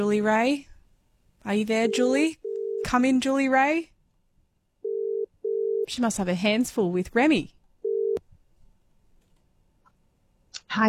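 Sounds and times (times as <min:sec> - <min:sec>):
speech: 0:00.0 - 0:00.7, 0:01.4 - 0:03.9, 0:05.9 - 0:07.6, 0:10.7 - 0:10.8
telephone call tone: 0:04.8 - 0:05.9, 0:07.8 - 0:08.2.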